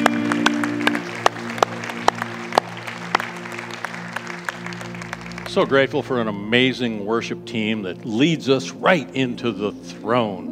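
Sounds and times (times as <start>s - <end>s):
audience praise clapping: 0.0s - 6.6s
speech: 5.5s - 10.5s.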